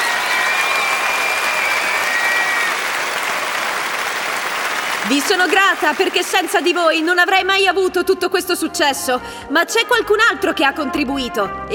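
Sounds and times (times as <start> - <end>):
audience applause: 0.0 - 7.2
speech: 5.1 - 11.7.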